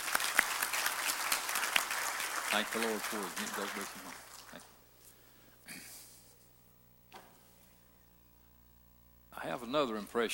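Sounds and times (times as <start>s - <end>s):
audience applauding: 0.0s - 4.8s
speech: 2.5s - 4.7s, 9.5s - 10.3s.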